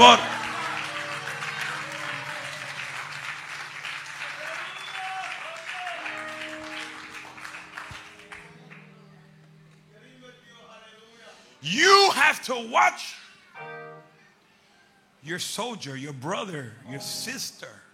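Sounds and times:
speech: 0.0s - 0.3s, 12.5s - 13.2s, 15.3s - 17.8s
cheers: 0.0s - 7.4s
audience applause: 0.0s - 9.1s.

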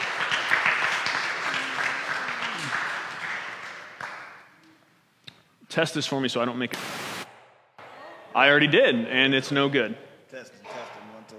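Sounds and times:
audience applause: 0.0s - 4.3s
speech: 5.8s - 7.2s, 8.4s - 10.7s.

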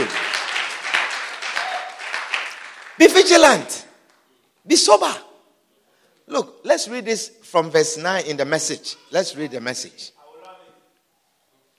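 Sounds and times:
audience clapping: 0.0s - 4.3s
speech: 3.0s - 3.9s, 4.7s - 5.3s, 6.3s - 10.2s.

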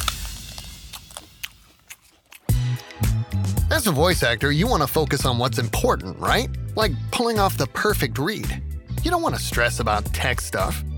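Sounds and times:
wet chewing and crunching of lobster: 0.0s - 3.1s
speech: 3.8s - 10.9s.

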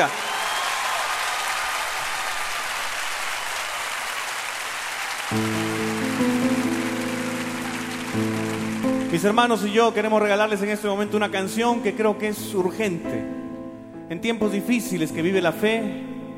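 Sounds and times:
speech: 0.0s - 0.2s, 5.3s - 5.7s, 9.2s - 13.4s, 14.1s - 16.2s
audience applause: 0.0s - 9.8s.

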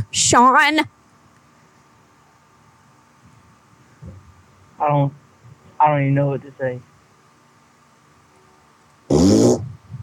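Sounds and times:
speech: 0.1s - 1.0s, 4.8s - 5.2s, 5.8s - 6.9s
fart from a pregnant woman: 9.1s - 9.8s.

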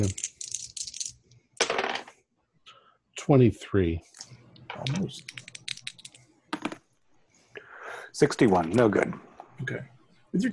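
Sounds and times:
speech: 0.0s - 0.2s, 3.3s - 4.1s, 4.8s - 5.4s, 8.2s - 10.5s
dice rolling across a hard surface: 0.0s - 2.2s, 4.8s - 6.8s.

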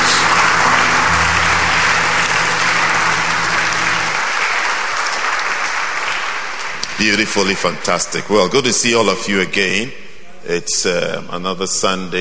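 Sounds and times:
audience clapping: 0.0s - 8.2s
speech: 7.0s - 12.1s.

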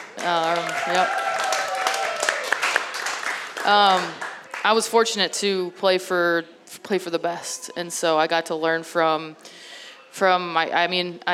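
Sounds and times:
audience applause: 0.0s - 4.7s
speech: 0.2s - 1.3s, 3.6s - 11.3s.

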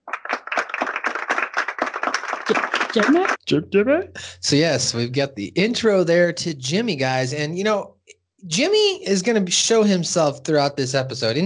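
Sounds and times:
crowd applauding: 0.0s - 3.4s
speech: 2.5s - 11.4s.

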